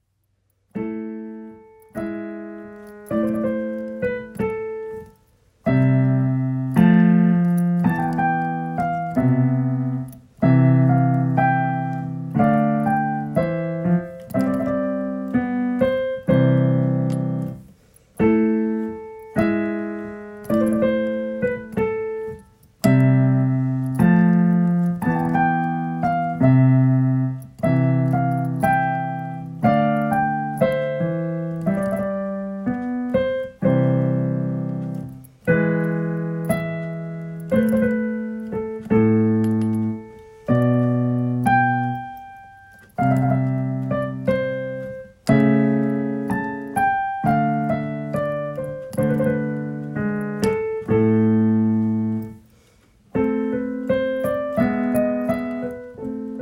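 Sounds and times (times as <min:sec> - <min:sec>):
piano: 0:00.0 - 0:56.4.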